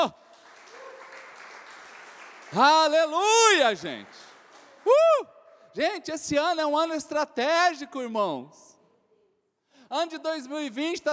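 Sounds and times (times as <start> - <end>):
speech: 0.0 - 0.2, 2.5 - 8.7, 9.9 - 11.1
audience applauding: 0.0 - 5.0.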